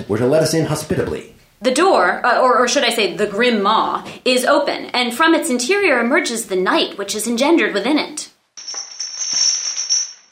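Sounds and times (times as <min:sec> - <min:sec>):
speech: 0:00.0 - 0:08.3
chain rattling: 0:08.6 - 0:10.3.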